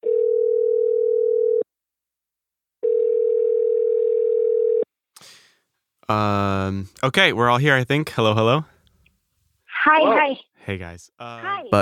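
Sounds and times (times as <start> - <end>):
telephone dial tone: 0.0 - 1.6, 2.8 - 4.8
speech: 6.1 - 8.7, 10.0 - 11.8.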